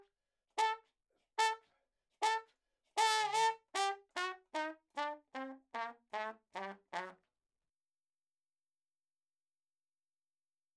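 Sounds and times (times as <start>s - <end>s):
ragtime music: 0.6s - 0.8s, 2.3s - 7.1s.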